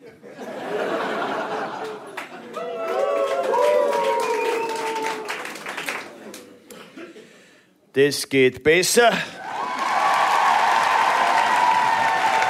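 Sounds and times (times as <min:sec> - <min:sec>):
laughter: 0:00.0 - 0:02.9
audience cheering: 0:00.9 - 0:06.1, 0:09.4 - 0:12.4
applause: 0:01.7 - 0:06.5, 0:09.5 - 0:12.4
speech: 0:08.0 - 0:09.4.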